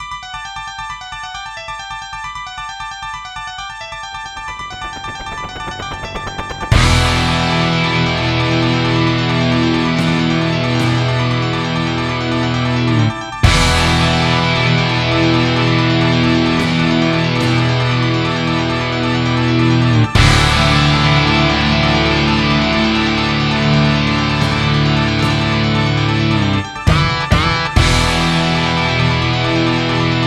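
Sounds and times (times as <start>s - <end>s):
MIDI music: 4.5s - 30.1s.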